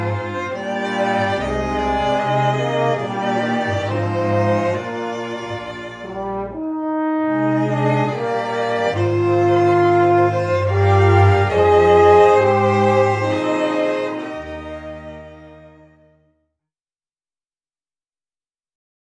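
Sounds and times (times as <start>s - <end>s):
horn and strings: 0.0s - 16.3s.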